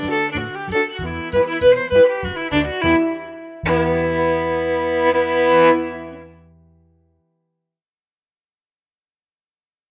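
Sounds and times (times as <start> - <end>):
fiddle: 0.0 - 6.5.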